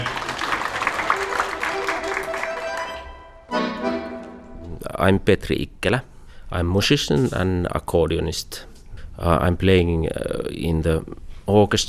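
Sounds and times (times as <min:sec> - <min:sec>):
audience applause after a dance: 0:00.0 - 0:03.2
speech: 0:05.0 - 0:11.8.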